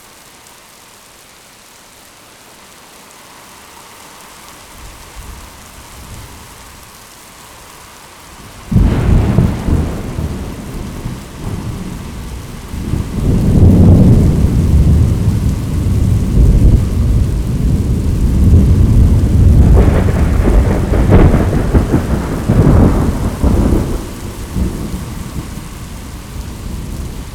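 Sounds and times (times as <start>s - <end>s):
thunder in a thunderstorm: 8.5s - 27.3s.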